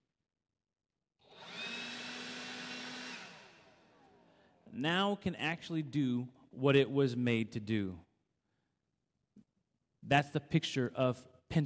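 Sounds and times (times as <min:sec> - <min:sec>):
leaf blower running: 0:01.2 - 0:04.7
speech: 0:04.8 - 0:08.1, 0:10.0 - 0:11.6.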